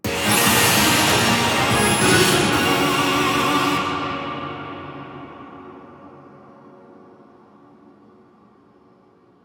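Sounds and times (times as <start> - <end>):
music at a stadium event: 0.0 - 5.0.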